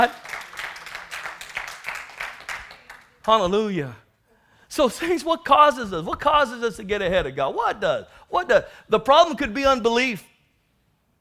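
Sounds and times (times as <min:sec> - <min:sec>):
church congregation clapping hands in praise: 0:00.0 - 0:03.9
speech: 0:03.2 - 0:04.0, 0:04.7 - 0:10.3.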